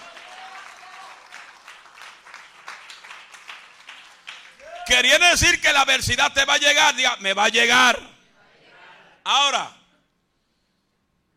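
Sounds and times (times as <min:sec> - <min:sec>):
audience applauding loudly: 0:00.0 - 0:05.0
speech: 0:04.9 - 0:08.1, 0:09.3 - 0:09.8.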